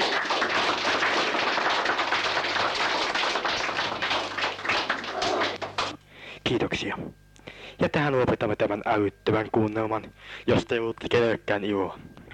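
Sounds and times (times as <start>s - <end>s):
audience applause after a radio play: 0.0s - 6.0s
speech: 7.8s - 12.1s.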